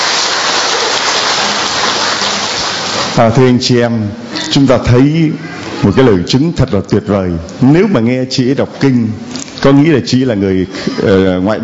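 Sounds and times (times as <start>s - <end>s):
audience applause: 0.0s - 3.2s
speech: 3.2s - 11.6s.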